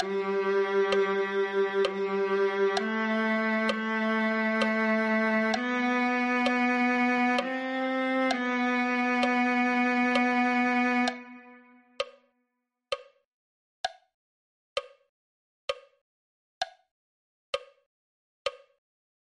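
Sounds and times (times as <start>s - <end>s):
viola: 0.0s - 12.0s.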